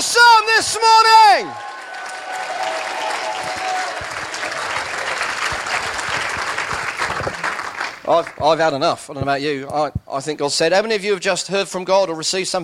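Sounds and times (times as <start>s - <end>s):
audience cheers and shouts: 0.0s - 5.7s
speech: 0.6s - 1.7s, 8.1s - 12.6s
audience clapping: 1.0s - 8.7s.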